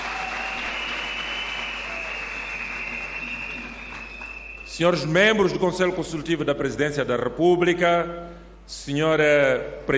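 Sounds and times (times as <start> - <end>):
audience applause: 0.0 - 4.7
speech: 4.8 - 9.9.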